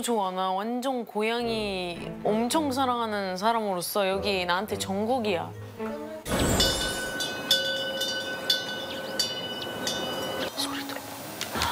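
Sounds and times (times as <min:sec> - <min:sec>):
speech: 0:00.0 - 0:06.6
wind chime ringing: 0:06.3 - 0:10.5.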